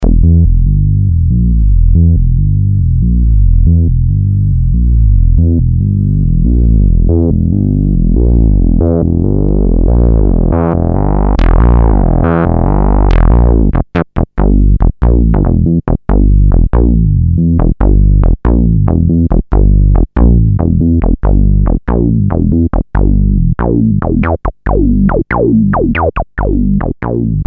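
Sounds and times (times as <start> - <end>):
minibass: 0.0 - 27.4.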